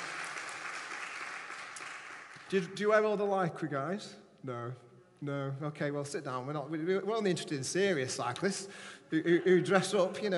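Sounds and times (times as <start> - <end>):
audience round of applause: 0.0 - 2.5
speech: 2.5 - 10.3.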